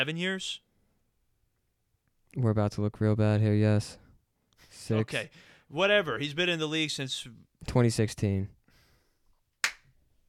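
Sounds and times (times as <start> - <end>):
speech: 0.0 - 0.6, 2.3 - 4.0, 4.6 - 8.6
hand clap: 9.6 - 9.9.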